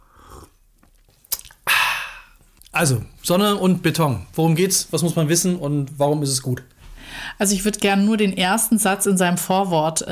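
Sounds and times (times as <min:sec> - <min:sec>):
person sipping a drink: 0:00.0 - 0:02.7
speech: 0:02.8 - 0:10.1.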